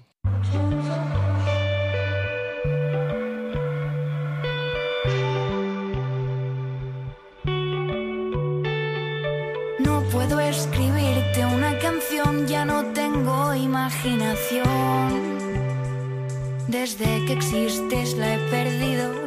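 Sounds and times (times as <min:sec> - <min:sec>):
pop song with punchy bass line and effect-heavy guitar or synth chords: 0:00.0 - 0:19.2
speech: 0:10.3 - 0:15.4, 0:16.7 - 0:19.2.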